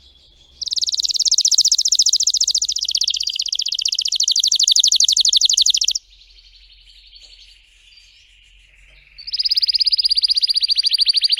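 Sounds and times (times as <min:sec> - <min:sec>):
canary singing: 0:00.0 - 0:06.0, 0:09.1 - 0:11.3.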